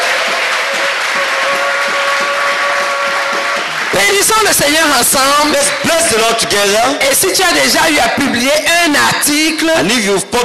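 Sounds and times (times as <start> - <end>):
applause at a church gathering celebrating academic achievements: 0.0 - 6.4
speech: 4.0 - 10.4.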